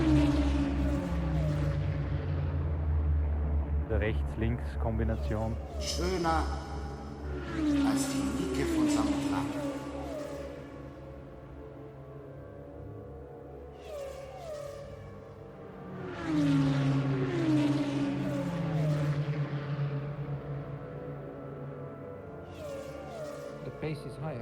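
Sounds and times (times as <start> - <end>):
Formula 1 racing car accelerating on full throttle in fourth gear: 0.0 - 24.4
speech: 4.0 - 9.6, 24.0 - 24.4.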